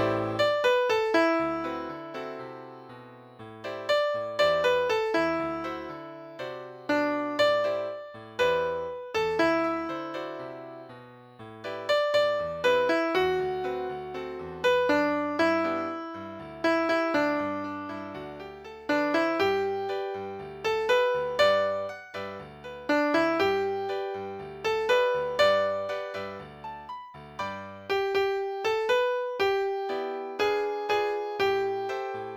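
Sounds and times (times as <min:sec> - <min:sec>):
piano: 0:00.0 - 0:32.3.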